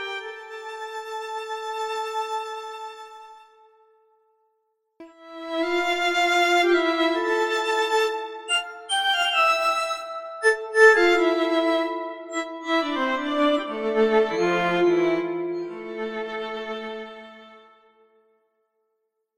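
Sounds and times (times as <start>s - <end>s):
violin: 0.0s - 3.8s, 5.0s - 18.0s
glockenspiel: 8.5s - 10.8s.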